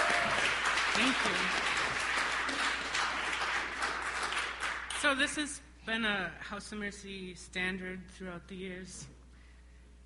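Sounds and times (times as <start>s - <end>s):
audience applause welcoming a singer at House of Mercy: 0.0s - 5.3s
speech: 1.2s - 1.7s, 5.1s - 9.2s.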